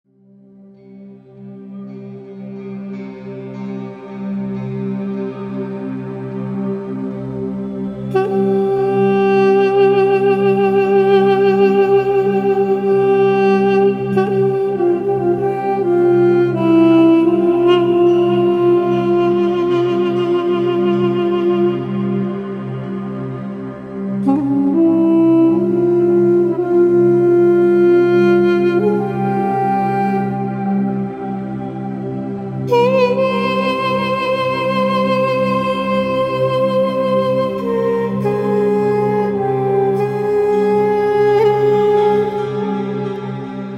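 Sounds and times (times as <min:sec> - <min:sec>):
Persian flute: 0:00.3 - 0:43.7.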